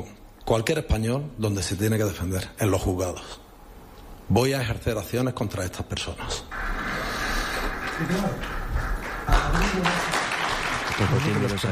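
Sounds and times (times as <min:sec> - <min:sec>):
speech: 0:00.0 - 0:03.4, 0:04.3 - 0:06.7, 0:08.0 - 0:08.5, 0:09.6 - 0:10.2, 0:11.0 - 0:11.7
applause: 0:06.7 - 0:11.7.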